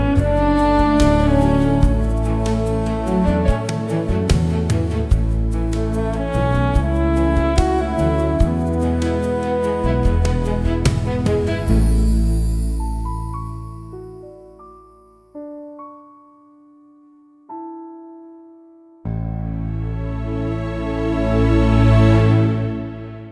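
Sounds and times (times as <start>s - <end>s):
calm orchestral pop film music: 0.0s - 14.3s, 19.1s - 23.2s.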